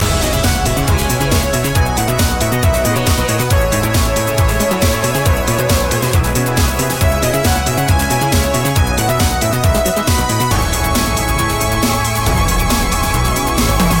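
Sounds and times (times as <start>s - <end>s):
retro techno loop: 0.0s - 13.9s.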